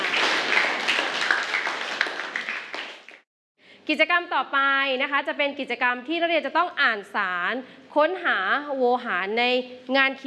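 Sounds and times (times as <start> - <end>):
class applauding: 0.0 - 3.3
speech: 3.9 - 10.2.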